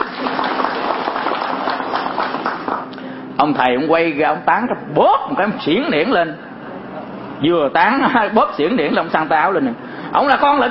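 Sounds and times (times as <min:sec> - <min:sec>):
audience applause: 0:00.0 - 0:03.0
speech: 0:03.4 - 0:06.5, 0:07.4 - 0:10.7.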